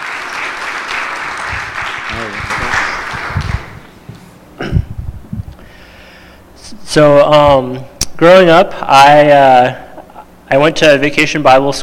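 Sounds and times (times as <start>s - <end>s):
church gathering audience clapping: 0.0s - 4.0s
speech: 6.9s - 9.8s, 10.5s - 11.8s.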